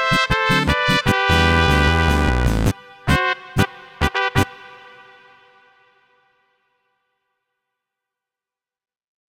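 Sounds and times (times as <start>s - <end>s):
Ovation bass guitar: 0.0s - 4.5s.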